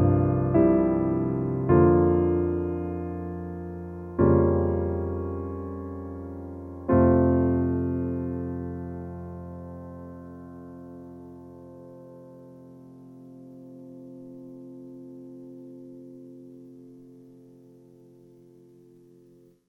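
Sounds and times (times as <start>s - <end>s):
warm piano: 0.0s - 19.6s.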